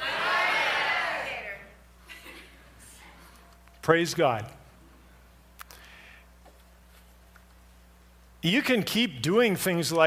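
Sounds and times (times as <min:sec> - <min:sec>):
audience shouting names together: 0:00.0 - 0:01.7
speech: 0:03.9 - 0:04.6, 0:08.4 - 0:10.0.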